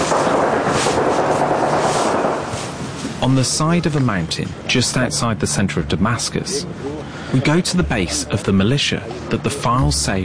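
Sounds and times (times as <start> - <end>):
gunfire: 0.0 - 2.6
speech: 3.2 - 10.2.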